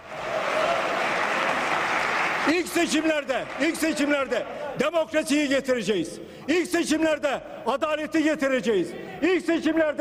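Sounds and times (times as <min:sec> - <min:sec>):
parliamentary group standing applause: 0:00.0 - 0:04.9
speech: 0:02.5 - 0:09.9.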